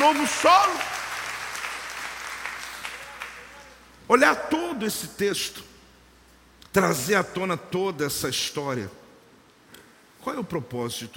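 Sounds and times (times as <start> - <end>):
audience applause: 0.0 - 3.6
speech: 0.1 - 1.0, 4.1 - 5.7, 6.8 - 9.0, 10.2 - 11.1.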